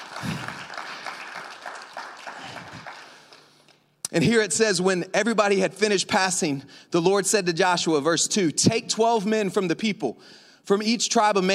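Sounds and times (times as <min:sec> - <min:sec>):
crowd applauding in a large room: 0:00.0 - 0:03.8
speech: 0:04.2 - 0:11.5.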